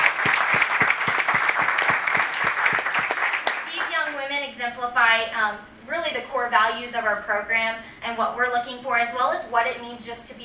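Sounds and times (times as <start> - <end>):
audience applause: 0.0 - 4.2
speech: 4.7 - 10.4.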